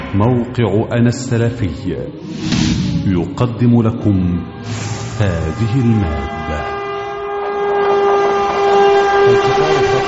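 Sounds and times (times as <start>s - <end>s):
speech: 0.1s - 6.4s
train horn blaring in a multi-toned blast: 4.3s - 10.0s.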